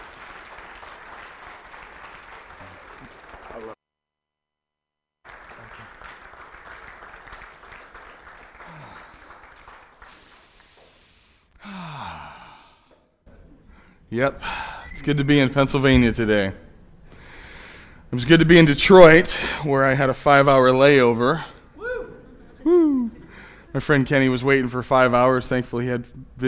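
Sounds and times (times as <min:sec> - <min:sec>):
church audience applause welcoming a former youth pastor: 0:00.0 - 0:03.8, 0:05.3 - 0:11.0
speech: 0:03.0 - 0:03.8, 0:14.2 - 0:16.6, 0:18.2 - 0:21.5, 0:23.8 - 0:26.4.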